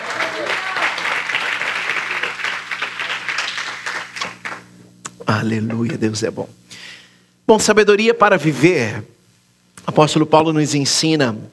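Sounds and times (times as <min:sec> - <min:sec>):
audience applauding: 0:00.0 - 0:04.7
speech: 0:05.3 - 0:06.6, 0:07.5 - 0:09.2, 0:09.8 - 0:11.5.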